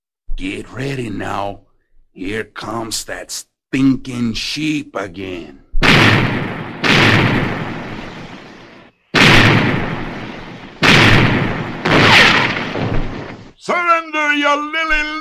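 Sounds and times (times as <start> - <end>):
speech: 0.4 - 6.6, 13.6 - 15.2
ship cannon blasts: 5.8 - 13.6.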